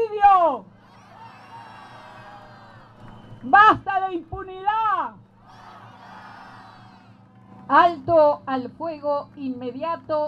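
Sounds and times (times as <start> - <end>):
high whoops and yells from protest crowd: 0.8 - 3.2, 5.4 - 7.1
protest crowd shouting and cheering slogans: 0.8 - 3.5, 5.4 - 7.3
speech: 3.4 - 5.2, 7.7 - 10.2.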